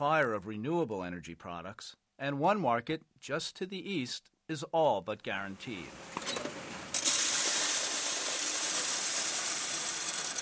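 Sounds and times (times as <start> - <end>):
speech: 0.0 - 6.2
freshly struck euro coins clattering from a mint machine in Berlin into a sorter: 6.9 - 10.4.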